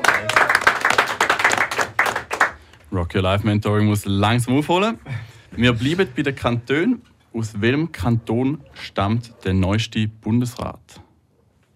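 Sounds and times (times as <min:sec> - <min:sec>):
audience applause during a quiz on Swiss cantons: 0:00.0 - 0:02.6
speech: 0:03.0 - 0:11.0.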